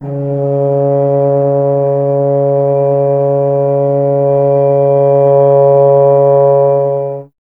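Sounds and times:
tuba solo: 0:00.0 - 0:07.3.

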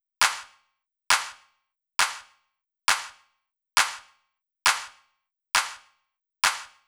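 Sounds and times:
clap at 135 bpm: 0:00.2 - 0:00.5, 0:01.1 - 0:01.4, 0:02.0 - 0:02.3, 0:02.9 - 0:03.2, 0:03.8 - 0:04.1, 0:04.7 - 0:05.0, 0:05.6 - 0:05.8, 0:06.4 - 0:06.8.

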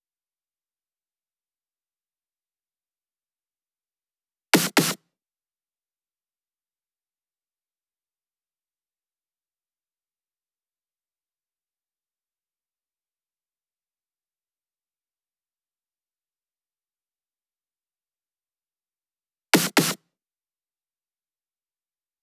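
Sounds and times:
snare drum fill at 128 BPM: 0:04.6 - 0:05.0, 0:19.6 - 0:20.0.

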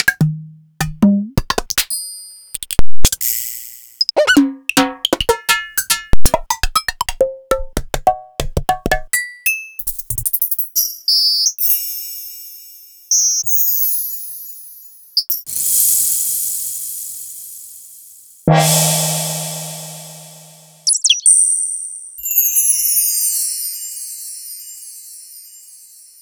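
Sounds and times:
Korg Triton synth percussion: 0:00.0 - 0:01.9, 0:03.0 - 0:09.1, 0:18.5 - 0:21.2.

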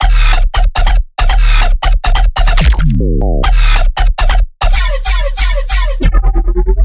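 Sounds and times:
bass loop at 140 BPM in D: 0:00.0 - 0:06.8.

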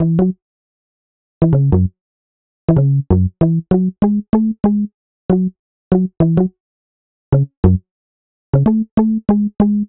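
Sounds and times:
electric bass pluck in cinematic funk: 0:00.0 - 0:00.4, 0:01.4 - 0:01.9, 0:02.7 - 0:06.5, 0:07.4 - 0:07.8, 0:08.6 - 0:09.8.

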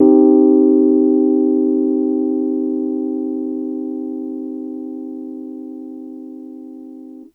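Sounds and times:
soft Rhodes electric piano in a minor key: 0:00.0 - 0:07.3.

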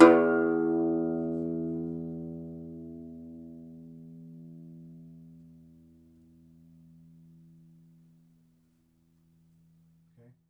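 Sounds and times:
second domra plucked strings: 0:00.0 - 0:02.6.

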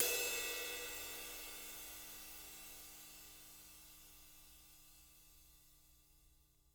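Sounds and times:
ride cymbal: 0:00.0 - 0:03.5.

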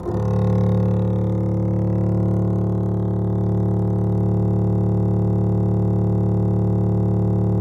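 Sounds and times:
double bass: 0:00.0 - 0:07.5.

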